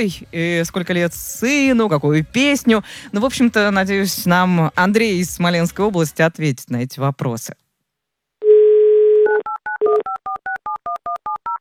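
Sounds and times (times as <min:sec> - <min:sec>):
speech: 0:00.0 - 0:07.6
telephone dialing tones: 0:08.4 - 0:11.5.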